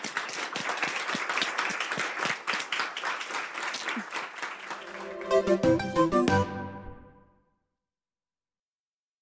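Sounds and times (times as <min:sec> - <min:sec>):
audience applause: 0:00.0 - 0:06.3
speech: 0:05.5 - 0:06.2.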